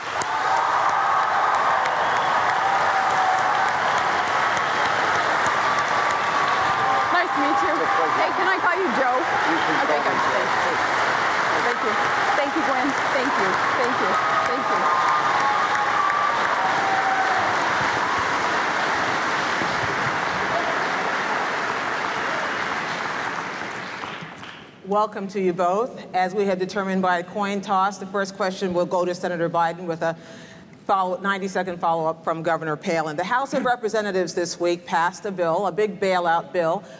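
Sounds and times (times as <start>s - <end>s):
debate-hall audience applause welcoming Governor Palin and Senator Biden at 2008 vice-presidential debate: 0.0s - 24.6s
speech: 25.0s - 36.9s.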